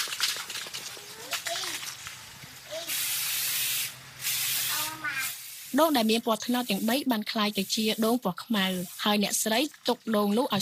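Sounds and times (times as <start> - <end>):
aerosol spray can hissing spraying black paint onto coconuts: 2.8 - 9.2
speech: 5.7 - 10.6.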